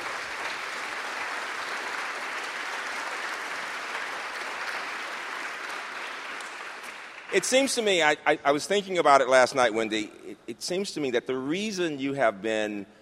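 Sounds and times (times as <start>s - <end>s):
audience applause: 0.0s - 7.9s
speech: 7.3s - 13.0s.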